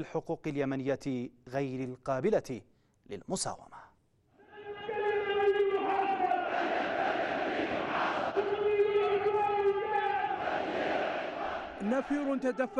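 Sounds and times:
speech: 0.0 - 3.9, 11.8 - 12.7
crowd chanting at a rally: 4.4 - 12.7.

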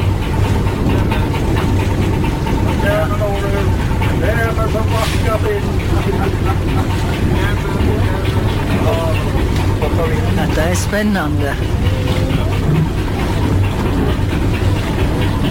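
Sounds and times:
boat Arnafjord engine chugging toward the quay at Atløy: 0.0 - 15.5
laughter: 5.5 - 9.4
speech: 10.9 - 11.9.

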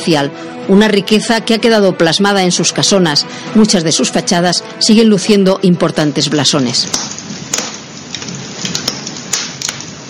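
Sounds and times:
speech: 0.0 - 7.2
crackling fire: 2.2 - 10.0.

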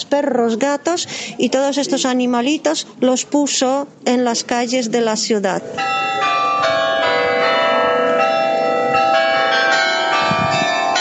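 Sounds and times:
speech: 0.1 - 6.2
carillon bells ringing from old town hall: 5.7 - 10.9.

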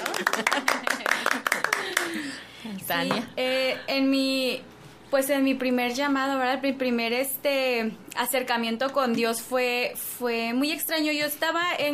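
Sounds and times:
church congregation clapping: 0.0 - 2.4
speech: 0.2 - 0.9, 2.9 - 11.9.

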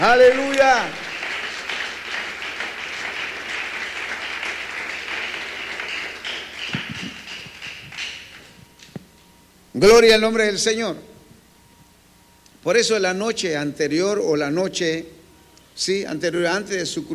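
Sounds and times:
speech: 0.0 - 1.0, 9.8 - 11.1, 12.6 - 15.2, 15.8 - 17.1
audience applause: 0.0 - 8.6.

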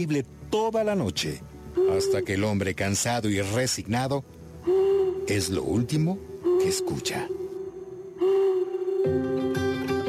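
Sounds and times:
speech: 0.0 - 7.4, 9.0 - 9.4
owl hooting: 1.7 - 2.7, 4.6 - 9.5.

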